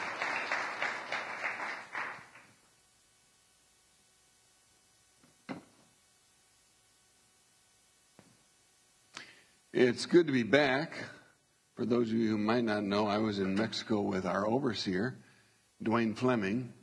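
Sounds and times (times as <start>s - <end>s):
audience applause for a reader at a scripture reading: 0.0s - 2.5s
speech: 9.8s - 11.2s, 11.8s - 15.2s, 15.8s - 16.8s.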